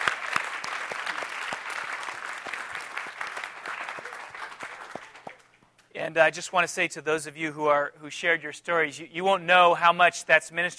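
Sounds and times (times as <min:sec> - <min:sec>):
audience applause: 0:00.0 - 0:05.6
speech: 0:06.0 - 0:10.7.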